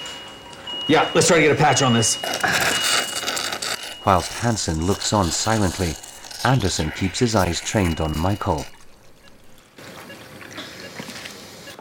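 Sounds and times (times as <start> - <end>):
speech: 0.9 - 3.1, 4.0 - 8.8
fluid poured into an open chest cavity, splashing and trickling: 5.9 - 11.4.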